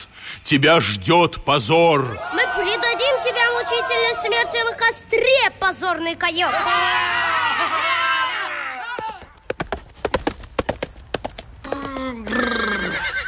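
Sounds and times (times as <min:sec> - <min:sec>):
speech: 0:00.5 - 0:07.8
galloping hoofbeats: 0:08.9 - 0:13.2
horse neighing: 0:11.6 - 0:13.2.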